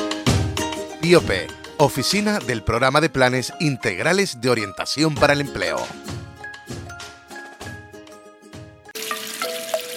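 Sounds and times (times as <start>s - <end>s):
speech: 1.1s - 6.2s
soft melodic tune: 1.7s - 9.9s
tap water running: 8.9s - 9.9s.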